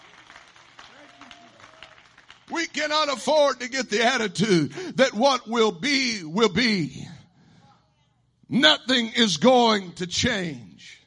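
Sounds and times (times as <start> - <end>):
audience clapping hands: 0.0 - 3.1
speech: 2.5 - 7.0, 8.5 - 11.0.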